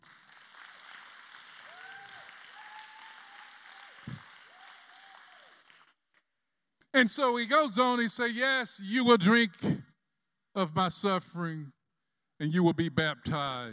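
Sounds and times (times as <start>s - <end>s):
audience clapping: 0.0s - 6.3s
speech: 7.0s - 9.8s, 10.6s - 11.8s, 12.4s - 13.7s.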